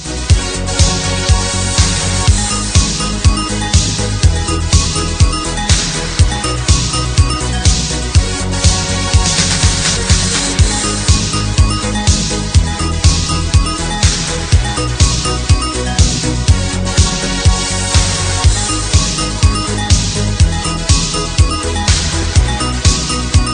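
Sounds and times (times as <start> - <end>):
hot disco music: 0.0 - 23.5.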